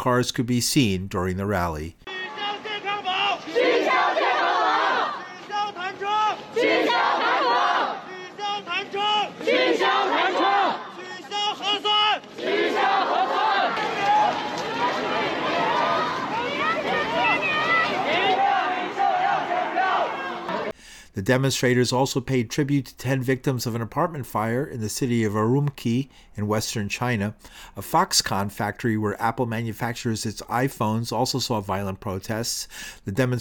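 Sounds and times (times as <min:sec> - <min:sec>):
speech: 0:00.0 - 0:02.1, 0:21.3 - 0:33.3
crowd shouting in rhythmic bursts: 0:02.1 - 0:20.8.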